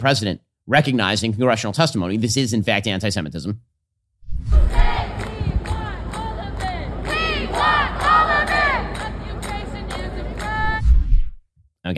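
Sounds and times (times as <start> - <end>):
speech: 0.0 - 3.7
protest crowd chanting slogans: 4.7 - 10.8.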